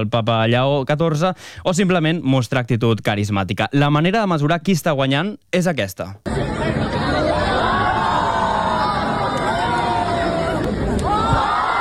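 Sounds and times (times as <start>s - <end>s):
speech: 0.0s - 6.7s
crowd applauding: 6.3s - 11.7s.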